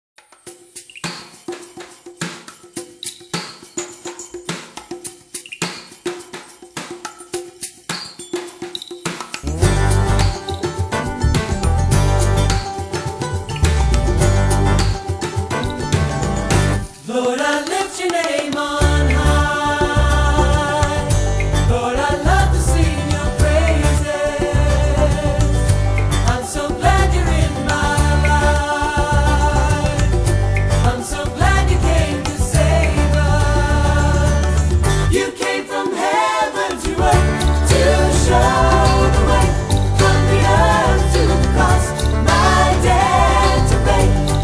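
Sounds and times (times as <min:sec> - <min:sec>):
acoustic worship music: 0:09.4 - 0:44.4.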